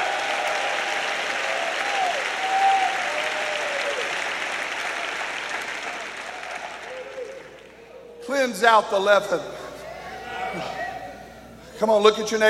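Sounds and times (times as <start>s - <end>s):
audience clapping: 0.0s - 7.9s
speech: 8.4s - 9.6s, 11.8s - 12.4s.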